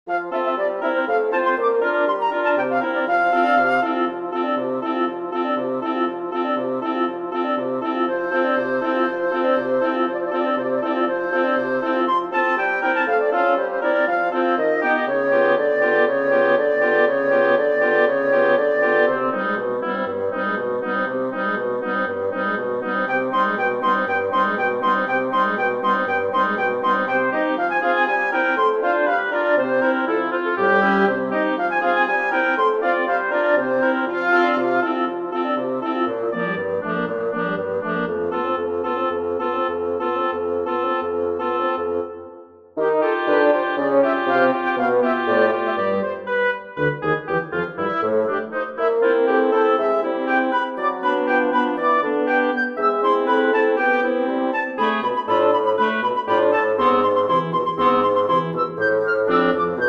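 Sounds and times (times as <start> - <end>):
wind quintet playing: 0.1 - 59.8.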